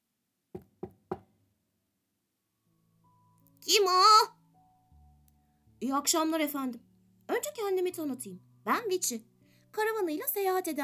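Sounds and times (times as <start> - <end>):
calm knocking on a cabin door: 0.6 - 1.3
speech: 5.8 - 10.8.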